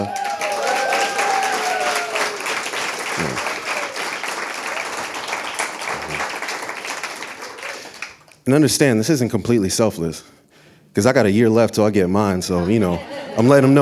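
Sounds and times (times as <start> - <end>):
whistles and cheers: 0.0 - 5.0
audience applause: 0.0 - 8.4
laughter: 3.1 - 4.0, 5.9 - 6.3, 12.6 - 13.8
speech: 8.5 - 10.4, 11.0 - 13.8.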